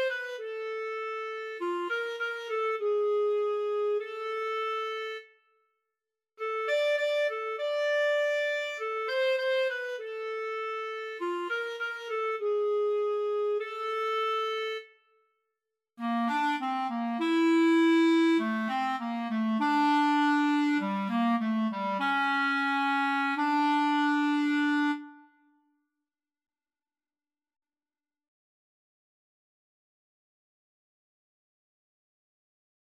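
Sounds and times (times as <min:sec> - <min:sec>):
clarinet duet: 0:00.0 - 0:05.3, 0:06.4 - 0:14.9, 0:16.0 - 0:25.4.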